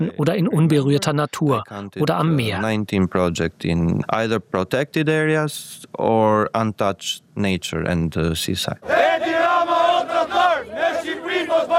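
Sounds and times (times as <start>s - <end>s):
speech: 0.0s - 9.3s
demonstrators chanting slogans: 8.8s - 11.7s.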